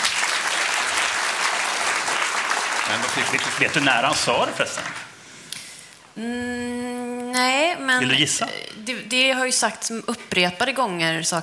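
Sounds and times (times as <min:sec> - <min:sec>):
applause: 0:00.0 - 0:05.1
speech: 0:02.9 - 0:05.1, 0:06.2 - 0:11.4.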